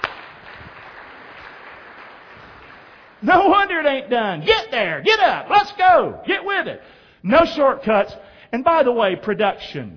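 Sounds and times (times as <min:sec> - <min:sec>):
audience clapping: 0:00.0 - 0:03.6
speech: 0:03.2 - 0:09.9.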